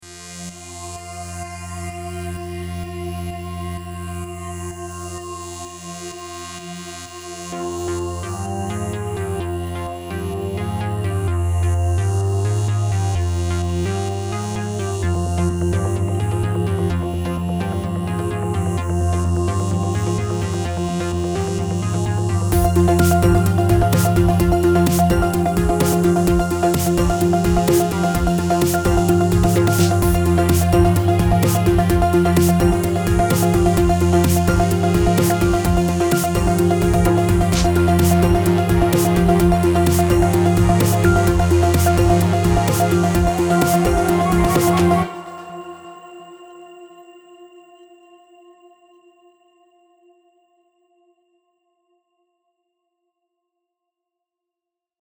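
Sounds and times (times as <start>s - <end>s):
suspense music: 8.2s - 46.4s.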